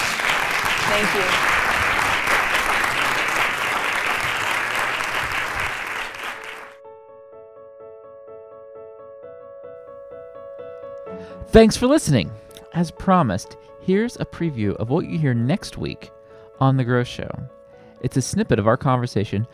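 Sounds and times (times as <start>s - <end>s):
crowd clapping: 0.0s - 6.8s
speech: 0.9s - 1.6s, 11.6s - 19.5s.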